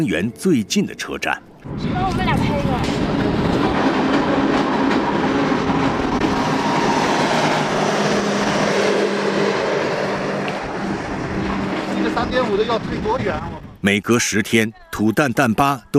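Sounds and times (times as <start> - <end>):
speech: 0.0 - 3.1, 12.3 - 15.9
Qinghai-Tibet Railway train rail rumble pulling into Tuotuohe station: 1.7 - 13.8.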